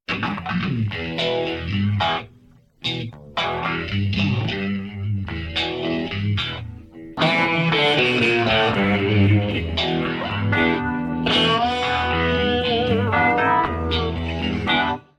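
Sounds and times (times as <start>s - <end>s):
guitar intro: 0.1s - 15.1s.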